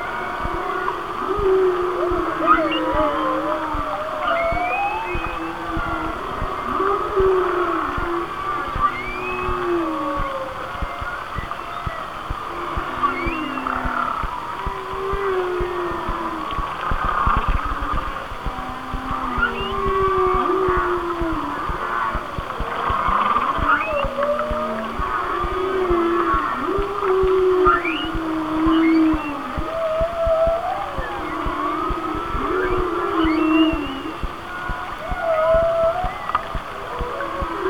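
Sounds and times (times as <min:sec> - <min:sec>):
steady hiss: 0:00.0 - 0:37.6
whale song: 0:00.0 - 0:37.6
continuous crackle of clicks and ticking: 0:08.7 - 0:37.6.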